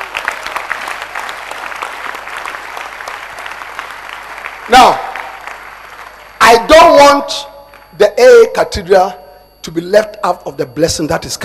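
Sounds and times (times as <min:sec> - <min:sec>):
crowd applause hand clapping: 0:00.0 - 0:06.7, 0:07.6 - 0:08.0
speech: 0:04.7 - 0:05.0, 0:06.6 - 0:11.4.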